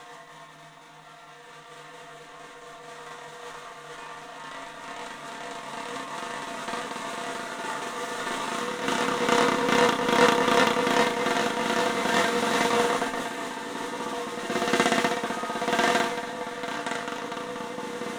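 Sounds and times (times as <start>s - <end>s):
3D drums: 5.1s - 18.1s.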